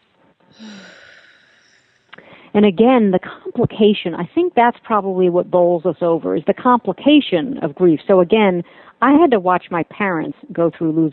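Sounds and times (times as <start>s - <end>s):
man taking a deep breath while speaking about grief: 0.5s - 2.5s
speech: 0.6s - 1.0s, 2.6s - 11.1s.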